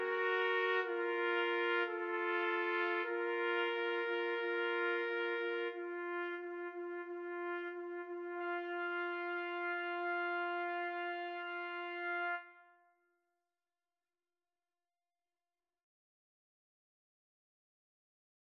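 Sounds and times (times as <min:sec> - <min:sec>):
trumpet trio playing a pavane: 0:00.0 - 0:12.5.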